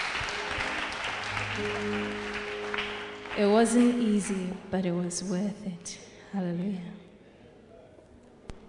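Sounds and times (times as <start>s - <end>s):
audience clapping in thanks: 0.0s - 4.6s
speech: 1.6s - 2.2s, 3.4s - 7.0s.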